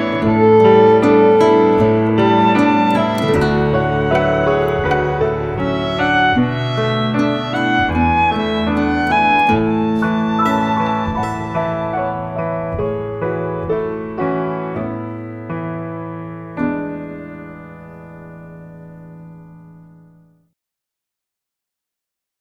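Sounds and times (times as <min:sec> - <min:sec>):
instrumental piece on violin: 0:00.0 - 0:19.1.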